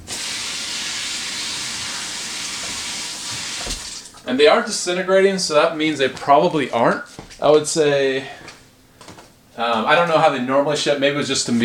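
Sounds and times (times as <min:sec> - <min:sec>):
tap water running over packaging peanuts: 0:00.0 - 0:04.2
speech: 0:04.3 - 0:08.5, 0:09.6 - 0:11.6.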